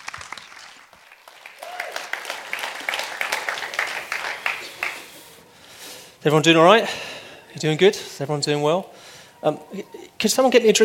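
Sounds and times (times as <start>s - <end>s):
audience applause welcoming a speaker: 0.0s - 5.4s
speech: 6.2s - 10.8s.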